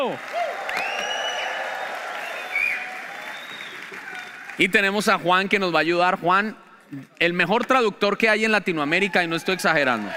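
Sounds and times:
speech: 0.0s - 0.4s, 4.6s - 10.1s
audience applause: 0.0s - 5.1s, 9.0s - 10.1s.

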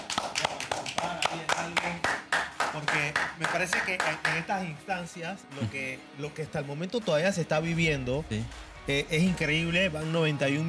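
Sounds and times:
applause: 0.0s - 4.8s
speech: 2.8s - 10.6s.

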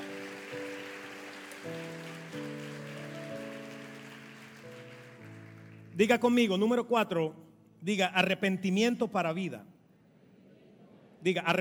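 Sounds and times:
church audience applause: 0.0s - 6.2s
speech: 6.0s - 9.7s, 11.2s - 11.5s.

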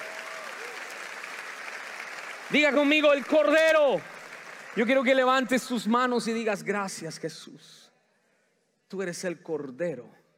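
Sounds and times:
audience applauding: 0.0s - 6.2s
speech: 2.5s - 4.1s, 4.8s - 7.9s, 8.9s - 10.2s.

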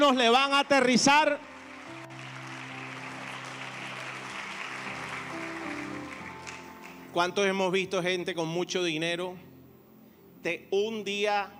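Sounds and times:
speech: 0.0s - 1.5s, 7.1s - 9.5s, 10.4s - 11.5s
crowd applauding: 0.0s - 7.4s.

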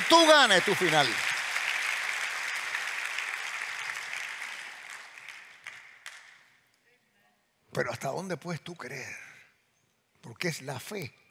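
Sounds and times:
crowd applauding: 0.0s - 6.5s
speech: 0.1s - 1.3s, 7.7s - 9.3s, 10.2s - 11.2s.

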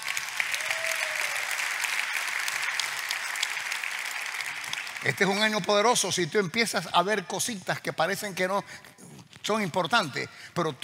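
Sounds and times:
audience applause: 0.0s - 5.6s
speech: 5.0s - 8.9s, 9.5s - 10.8s.

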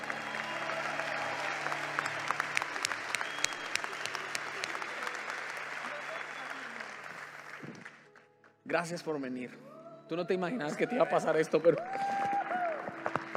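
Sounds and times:
audience applause: 0.0s - 8.1s, 11.7s - 13.3s
speech: 8.7s - 12.0s.

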